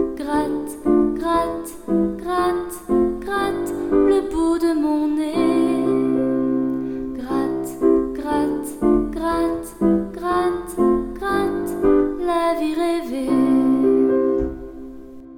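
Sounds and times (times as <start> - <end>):
woman singing in French with reverb: 0.0 - 6.4, 7.1 - 14.5.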